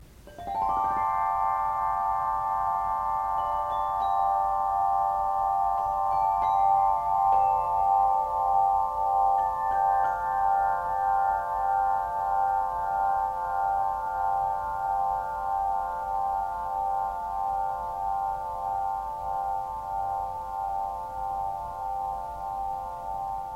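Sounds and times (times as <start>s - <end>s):
glockenspiel: 0.0s - 23.5s.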